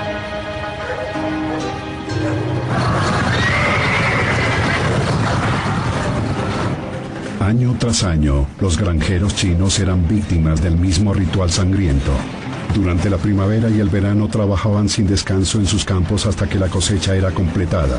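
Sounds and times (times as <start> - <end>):
hooves clip-clopping: 0.1 - 7.4
horses neighing: 0.5 - 6.9
speech: 7.5 - 17.9.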